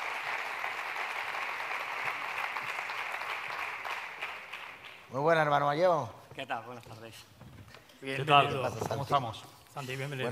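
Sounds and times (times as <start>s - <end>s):
audience applause: 0.0s - 5.1s
speech: 5.1s - 10.3s.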